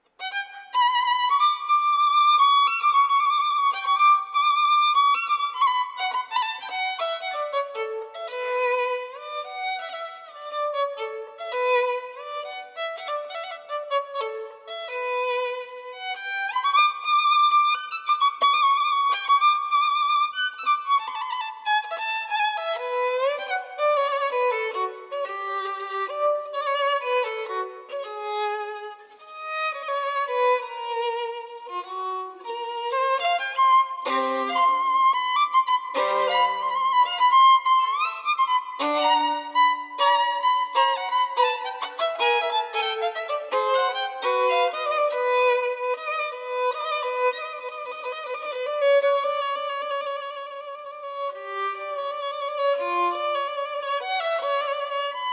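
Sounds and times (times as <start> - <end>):
folk fiddler music: 0.0 - 55.3.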